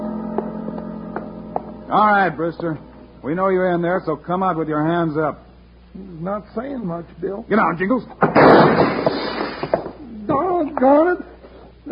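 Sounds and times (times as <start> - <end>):
speech: 1.9 - 5.4, 6.0 - 8.9, 10.8 - 11.3
gunshots: 8.3 - 9.8.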